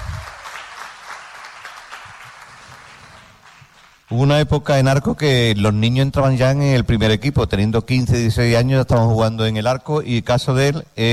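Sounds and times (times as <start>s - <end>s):
audience applause: 0.0s - 4.1s
speech: 4.1s - 11.1s.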